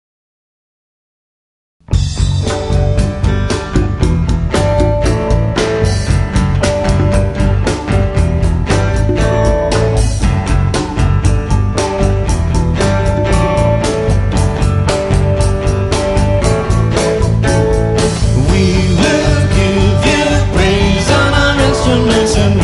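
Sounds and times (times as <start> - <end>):
music: 1.8 - 22.6.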